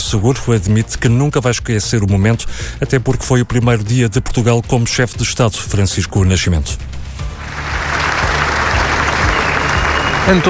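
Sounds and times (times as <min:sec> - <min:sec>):
speech: 0:00.1 - 0:07.0, 0:10.3 - 0:10.4
crowd applause: 0:07.4 - 0:10.4.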